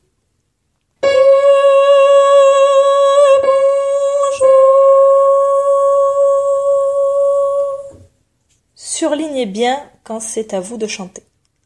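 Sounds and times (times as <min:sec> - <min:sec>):
soprano singing: 0:01.0 - 0:08.1.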